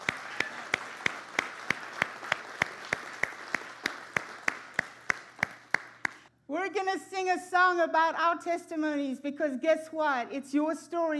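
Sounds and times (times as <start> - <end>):
rhythmic audience clapping: 0.0 - 6.3
scattered applause: 0.0 - 6.3
speech: 6.6 - 11.1.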